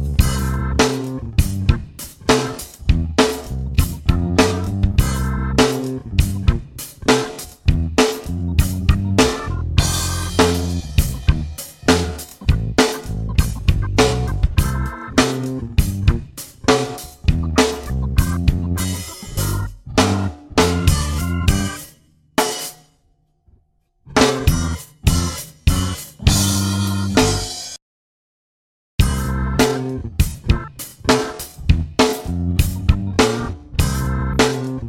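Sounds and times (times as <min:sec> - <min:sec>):
funk backing track without guitar: 0:00.0 - 0:22.9, 0:24.1 - 0:27.8, 0:29.0 - 0:34.8.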